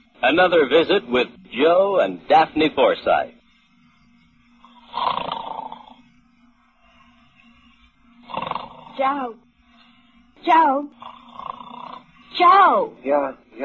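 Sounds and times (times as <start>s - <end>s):
speech: 0.2s - 3.4s, 9.0s - 9.4s, 10.4s - 11.2s, 12.4s - 13.6s
loud snoring: 4.6s - 6.1s, 8.2s - 9.4s, 10.9s - 12.5s.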